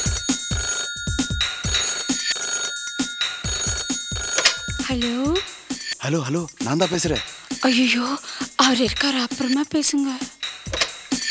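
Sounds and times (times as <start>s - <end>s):
old-style telephone bell ringing: 0.0s - 6.0s
steady rhythmic low thumping beat: 0.0s - 11.3s
speech: 4.9s - 10.3s.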